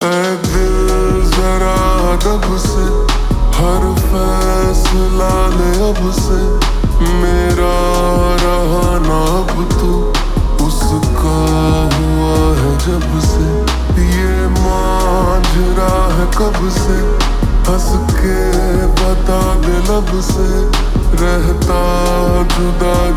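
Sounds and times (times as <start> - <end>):
slowed reverb music: 0.0 - 23.1.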